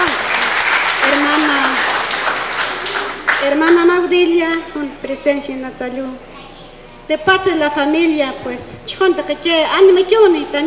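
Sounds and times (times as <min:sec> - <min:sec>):
loud applause: 0:00.0 - 0:04.9
laughter: 0:00.0 - 0:10.6
speech: 0:03.6 - 0:06.3, 0:07.1 - 0:10.6.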